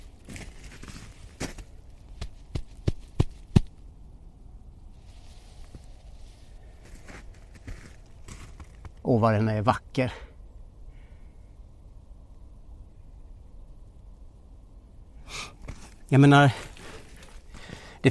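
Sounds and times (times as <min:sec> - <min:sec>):
hand patting a mossy rock slab: 0:02.2 - 0:03.7
speech: 0:09.1 - 0:10.3, 0:16.1 - 0:16.7.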